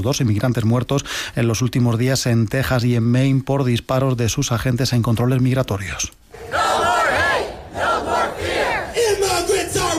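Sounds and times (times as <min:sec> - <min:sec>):
speech: 0:00.0 - 0:06.6
protest crowd chanting: 0:06.3 - 0:09.9.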